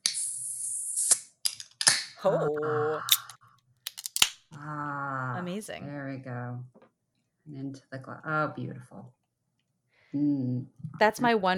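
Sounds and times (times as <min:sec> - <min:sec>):
speech: 0:02.2 - 0:03.2, 0:04.6 - 0:06.8, 0:07.4 - 0:09.2, 0:10.1 - 0:11.5
beer cans being cracked open: 0:03.1 - 0:04.4.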